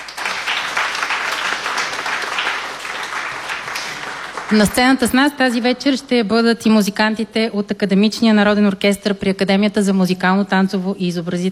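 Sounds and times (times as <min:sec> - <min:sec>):
audience applause: 0:00.0 - 0:05.0
speech: 0:04.5 - 0:11.4.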